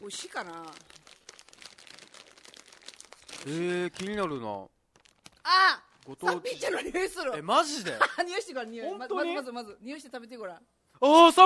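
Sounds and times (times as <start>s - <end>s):
speech: 0.0s - 1.0s, 3.4s - 4.8s, 5.5s - 11.4s
Okinawa sanpin-cha and salt flavour snack packet crinkling as opened: 0.0s - 6.3s.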